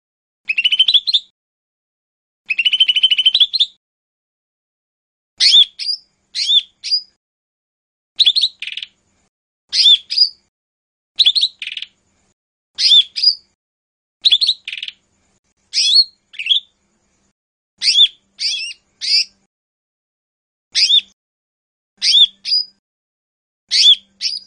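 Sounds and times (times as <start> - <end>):
Lesser green leafbird song with chirps and buzzy trills: 0.5 - 1.3, 2.5 - 3.8, 5.4 - 7.2, 8.2 - 10.5, 11.2 - 13.6, 14.2 - 19.5, 20.7 - 21.2, 22.0 - 22.8, 23.7 - 24.4.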